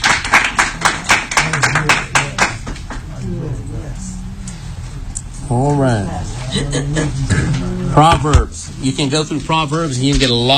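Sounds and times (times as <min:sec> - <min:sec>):
audience clapping hands: 0:00.0 - 0:03.1
speech: 0:05.5 - 0:10.5.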